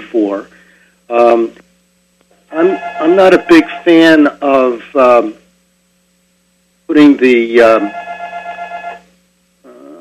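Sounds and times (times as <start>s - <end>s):
speech: 0.1s - 1.6s, 2.5s - 5.4s, 6.9s - 8.0s
telephone ringing: 2.5s - 3.8s, 7.8s - 9.1s.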